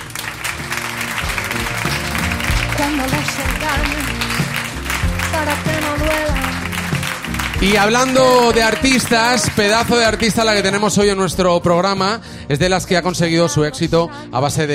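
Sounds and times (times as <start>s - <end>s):
applause: 0.0s - 11.4s
speech: 2.8s - 4.2s, 5.4s - 6.6s, 7.6s - 14.7s.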